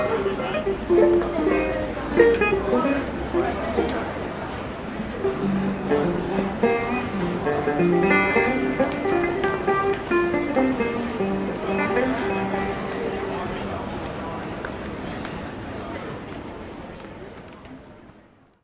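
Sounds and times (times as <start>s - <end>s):
busker playing banjo in Melbourne: 0.0s - 14.6s.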